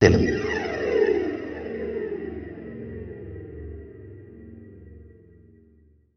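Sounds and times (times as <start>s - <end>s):
reverb atmospheres: 0.0s - 3.9s.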